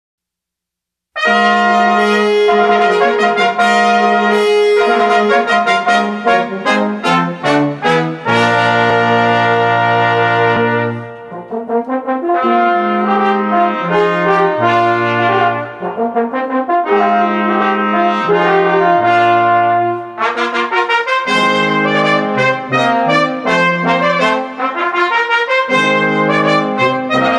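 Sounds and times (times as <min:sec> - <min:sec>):
fanfare: 0:01.2 - 0:27.3.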